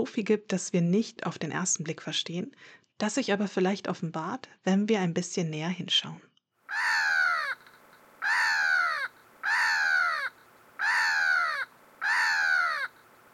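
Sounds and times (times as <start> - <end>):
speech: 0.0 - 6.9
Black-headed Gull screeching: 6.7 - 13.1.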